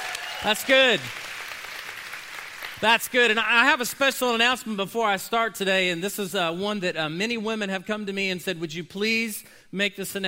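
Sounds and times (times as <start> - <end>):
audience cheering and applauding: 0.0 - 2.9
speech: 0.4 - 1.2, 2.8 - 10.2.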